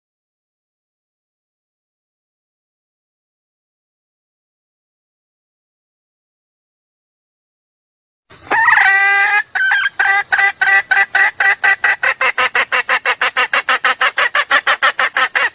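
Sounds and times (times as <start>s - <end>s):
junglefowl clucking: 8.3s - 15.5s.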